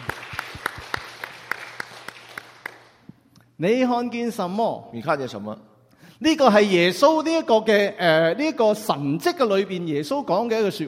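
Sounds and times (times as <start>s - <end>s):
listeners at a sermon clapping for mothers in unison: 0.0s - 3.1s
speech: 3.6s - 10.8s.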